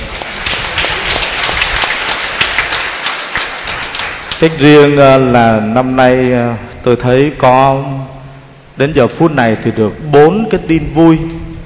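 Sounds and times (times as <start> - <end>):
big round of applause: 0.0 - 5.0
speech: 4.4 - 8.2, 8.8 - 11.4.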